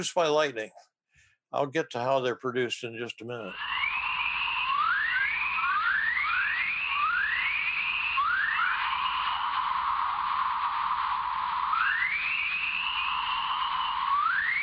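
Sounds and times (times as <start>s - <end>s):
speech: 0.0s - 0.9s, 1.5s - 3.8s
dawn chorus radio emissions rising whistle-like chirps: 3.4s - 14.6s
steady band of static hiss: 8.4s - 14.6s.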